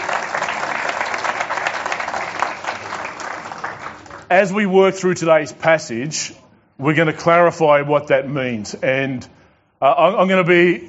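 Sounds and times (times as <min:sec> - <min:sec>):
audience applauding: 0:00.0 - 0:04.4
speech: 0:04.3 - 0:10.8.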